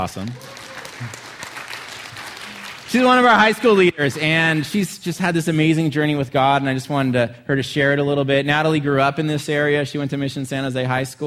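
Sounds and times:
speech: 0.0s - 1.2s, 2.9s - 11.2s
crowd applauding: 0.0s - 4.9s.

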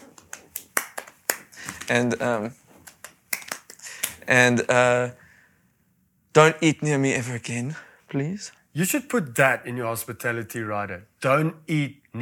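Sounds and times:
hand clapping: 0.0s - 2.0s, 2.8s - 4.3s
speech: 1.9s - 2.6s, 4.3s - 5.2s, 6.4s - 12.2s.

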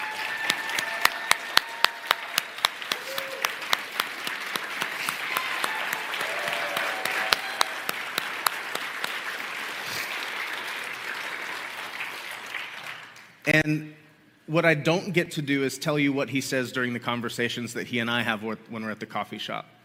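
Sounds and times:
audience applause: 0.0s - 13.4s
speech: 13.5s - 19.8s.

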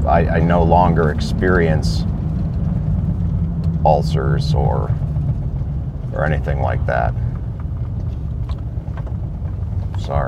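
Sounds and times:
road traffic: 0.0s - 10.2s
speech: 0.1s - 2.2s, 3.8s - 5.0s, 6.1s - 7.2s, 10.1s - 10.2s.

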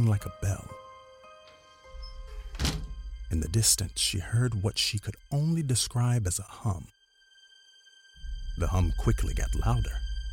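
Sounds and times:
speech: 0.0s - 0.8s, 3.3s - 7.0s, 8.6s - 10.0s
stuck door bumping closed: 1.9s - 3.2s.

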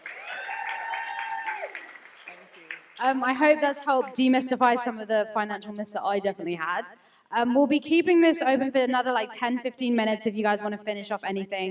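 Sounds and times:
audience round of applause: 0.0s - 3.0s
speech: 3.0s - 11.6s.

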